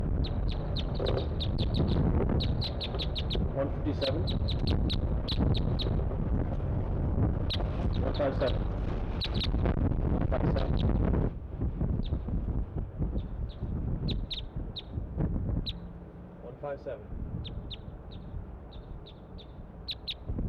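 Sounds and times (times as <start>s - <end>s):
birds chittering: 0.1s - 6.1s, 7.4s - 9.8s, 10.4s - 11.1s, 11.9s - 12.3s, 13.1s - 15.9s, 17.4s - 20.3s
speech: 0.3s - 9.7s, 10.3s - 11.4s, 16.7s - 17.8s.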